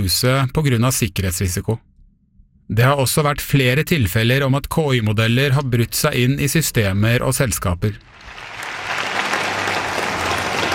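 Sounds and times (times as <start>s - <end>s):
speech: 0.0s - 1.9s, 2.7s - 8.1s
crowd applause at Donald Trump's launch of the American government's new website: 8.1s - 10.7s.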